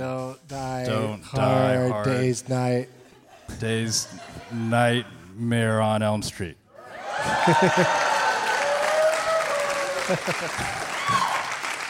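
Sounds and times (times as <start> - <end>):
speech: 0.0 - 6.6, 7.4 - 8.0, 10.1 - 11.4
laughter: 3.1 - 5.3, 7.0 - 8.4, 9.7 - 11.0
people whooping: 6.8 - 11.8
audience clapping: 7.1 - 11.8.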